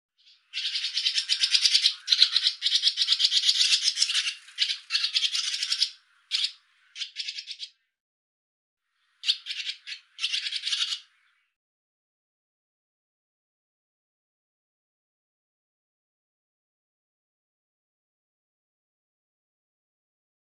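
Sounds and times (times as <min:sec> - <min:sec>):
barn swallow chirping with softer buzzy notes: 0:00.2 - 0:07.8, 0:09.1 - 0:11.5.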